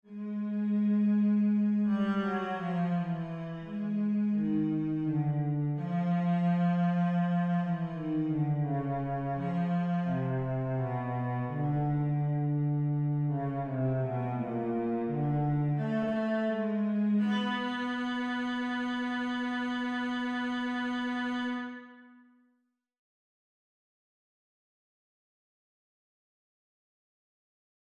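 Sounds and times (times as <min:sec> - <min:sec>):
cello: 0:00.0 - 0:22.3.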